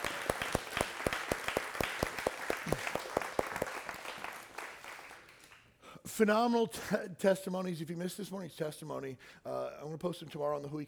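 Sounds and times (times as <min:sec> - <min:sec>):
crowd applause: 0:00.0 - 0:05.5
speech: 0:06.2 - 0:10.8.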